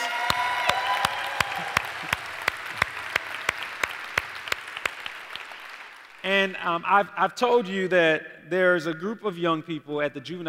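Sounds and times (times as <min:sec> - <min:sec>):
church congregation applauding to welcome other church campuses: 0:00.0 - 0:06.7
speech: 0:06.3 - 0:10.4.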